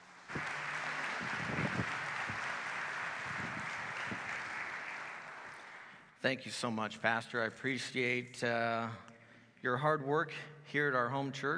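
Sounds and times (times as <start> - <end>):
church congregation applauding a guest speaker: 0.0 - 6.2
speech: 6.2 - 11.5.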